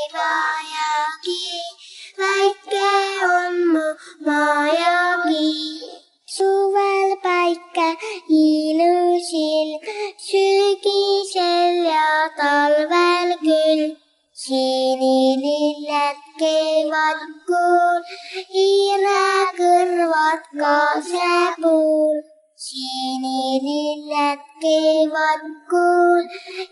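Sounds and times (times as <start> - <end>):
vocals: 0.0 - 26.7.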